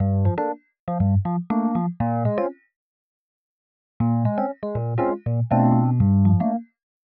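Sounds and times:
Rhodes electric piano riff chords in G: 0.0s - 2.5s, 4.0s - 6.6s.

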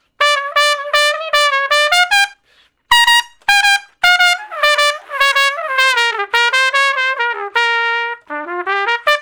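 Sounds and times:
trumpet shuffle in G: 0.0s - 9.2s.

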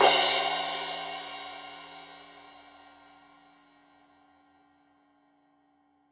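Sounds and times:
15 inch crash cymbal edge hit: 0.0s - 2.5s.

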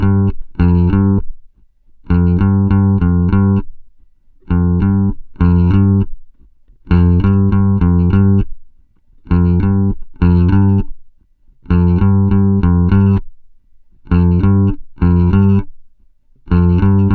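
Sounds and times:
bass grooves: 0.0s - 1.4s, 2.1s - 3.8s, 4.5s - 6.2s, 6.8s - 8.6s, 9.3s - 11.0s, 11.6s - 13.3s, 14.0s - 15.8s, 16.5s - 17.1s.

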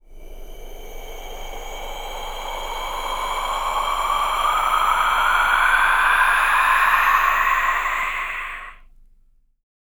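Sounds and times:
cold vocal wind: 0.2s - 8.8s.

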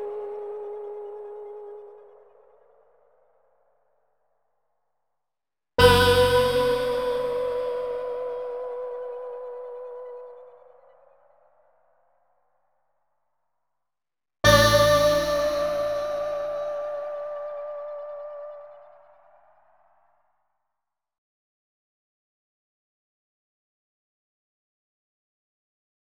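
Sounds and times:
power ahh effect choir voice: 5.8s - 10.4s, 14.5s - 18.3s.

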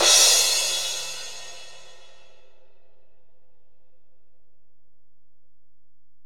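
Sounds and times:
ride cymbal on Alesis DM-PRO: 0.0s - 2.4s.

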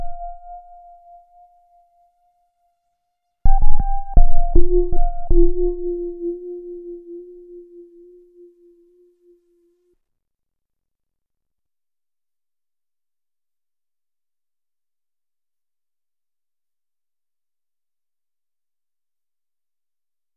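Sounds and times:
electro lounge music with little tremolos: 3.5s - 8.0s.

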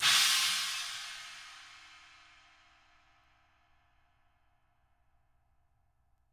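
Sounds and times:
Chinese drums: 0.0s - 2.4s.

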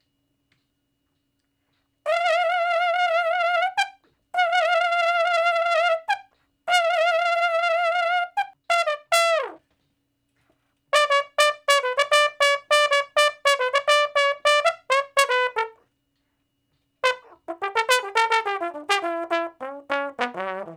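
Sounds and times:
trombone shuffle in E: 2.1s - 9.7s, 10.9s - 15.8s, 17.0s - 20.7s.

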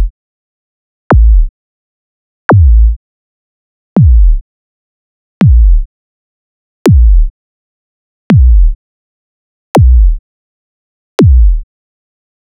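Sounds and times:
subby kick drums: 1.1s - 1.5s, 2.5s - 3.0s, 4.0s - 4.4s, 5.4s - 5.9s, 6.9s - 7.3s, 8.3s - 8.8s, 9.8s - 10.2s, 11.2s - 11.6s.

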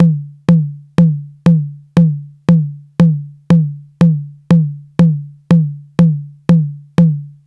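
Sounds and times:
saturated high tom drum: 0.0s - 7.3s.

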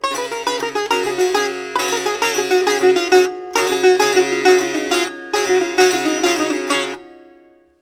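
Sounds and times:
sitar groove: 0.0s - 7.8s.

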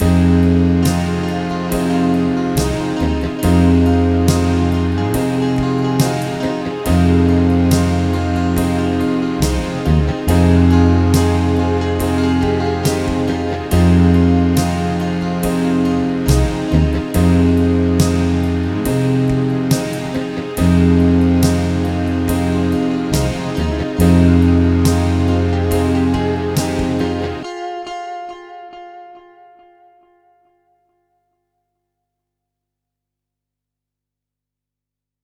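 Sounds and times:
bass grooves: 0.0s - 27.4s.

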